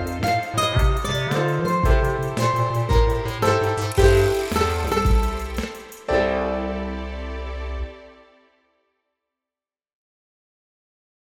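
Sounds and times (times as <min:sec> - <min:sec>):
MIDI blues music: 0:00.0 - 0:06.2.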